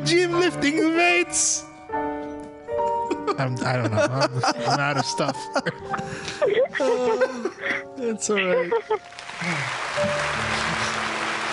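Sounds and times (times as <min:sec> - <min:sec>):
speech: 0:00.0 - 0:02.1, 0:03.3 - 0:10.6
laughter: 0:03.0 - 0:11.1
studio audience applause: 0:08.8 - 0:11.5.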